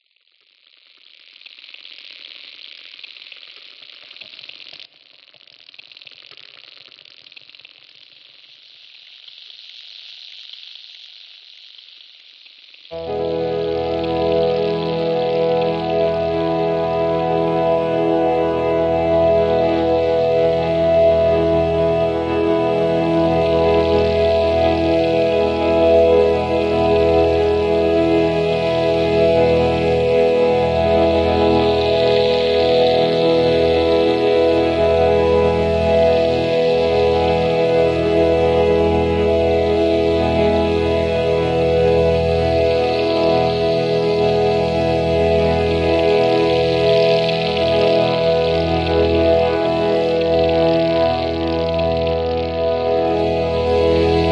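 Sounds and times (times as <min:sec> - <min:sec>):
sunrise ambient music: 0:13.0 - 0:54.3.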